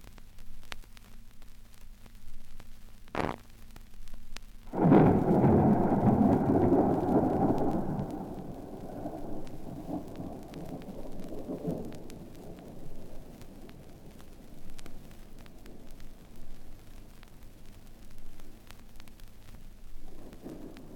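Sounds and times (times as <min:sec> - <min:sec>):
scary thunderclaps: 0:04.7 - 0:18.6, 0:20.0 - 0:20.9.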